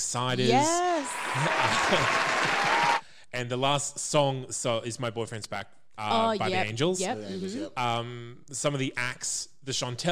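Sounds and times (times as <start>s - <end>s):
speech: 0.0s - 10.1s
laughter: 0.4s - 3.0s, 6.1s - 7.7s
virtual hand clap sound effect: 0.6s - 3.0s.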